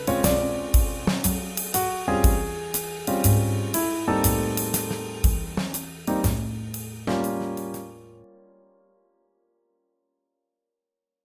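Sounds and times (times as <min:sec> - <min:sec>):
swing jazz: 0:00.0 - 0:08.1.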